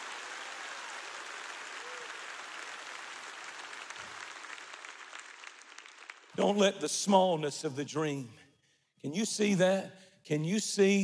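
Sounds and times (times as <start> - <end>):
audience clapping hands: 0.0 - 6.9
speech: 6.4 - 8.4, 9.0 - 11.0.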